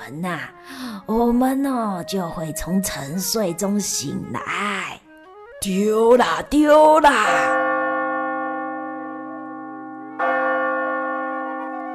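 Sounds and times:
speech: 0.1s - 5.0s, 5.6s - 7.7s
bell striking: 7.3s - 11.9s.

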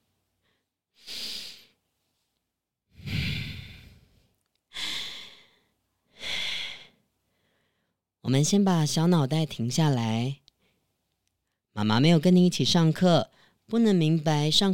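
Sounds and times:
deep calming breaths: 0.4s - 1.8s, 3.0s - 8.1s
speech: 8.3s - 10.4s, 11.8s - 14.7s.

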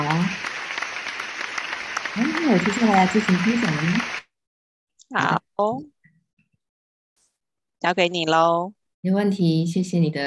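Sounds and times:
audience applause: 0.0s - 4.2s
speech: 2.2s - 4.2s, 5.1s - 6.0s, 7.8s - 10.2s.

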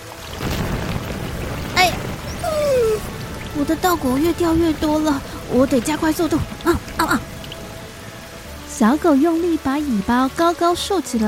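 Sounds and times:
huge ocean waves crashing: 0.4s - 8.6s
speech: 3.6s - 7.2s, 8.8s - 11.2s.

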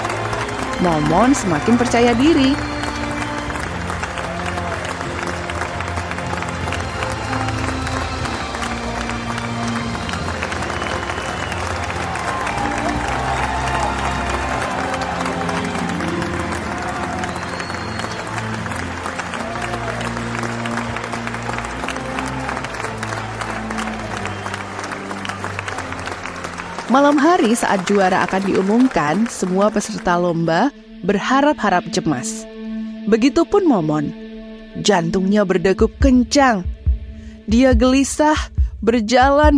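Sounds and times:
audience applauding after a song at a singing contest: 0.0s - 30.4s
speech: 0.8s - 2.8s, 27.2s - 34.2s, 34.8s - 36.7s, 37.5s - 39.5s.

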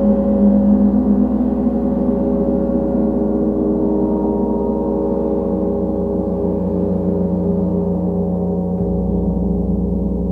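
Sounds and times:
sustained layered gong tones in a gong bath: 0.0s - 10.3s.

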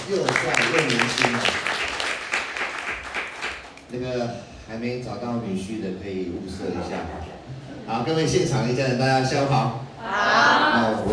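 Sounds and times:
audience applause: 0.0s - 3.9s
speech: 0.1s - 1.6s, 4.0s - 11.1s.

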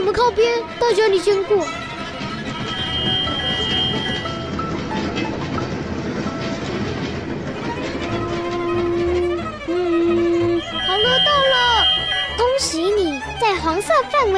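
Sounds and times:
tram running on rails: 0.0s - 14.3s
speech: 0.1s - 1.8s, 13.4s - 14.3s.

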